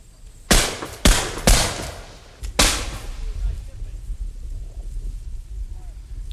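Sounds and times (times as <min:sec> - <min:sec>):
flintlock musket volley firing: 0:00.5 - 0:03.4.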